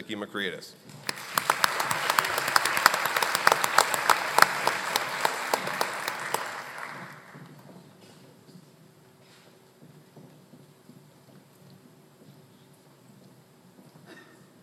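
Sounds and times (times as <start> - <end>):
speech: 0.1 - 1.0
audience applauding: 0.9 - 7.7.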